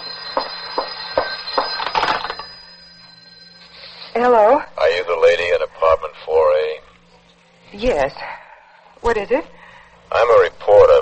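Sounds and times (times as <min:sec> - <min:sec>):
telephone ringing: 0:00.0 - 0:04.5
speech: 0:04.2 - 0:06.8, 0:07.7 - 0:08.4, 0:09.0 - 0:11.0.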